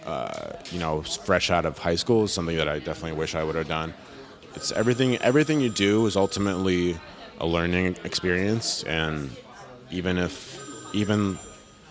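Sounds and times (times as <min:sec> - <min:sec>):
speech: 0:00.7 - 0:11.5
phone ringtone: 0:04.6 - 0:07.7, 0:10.3 - 0:11.8.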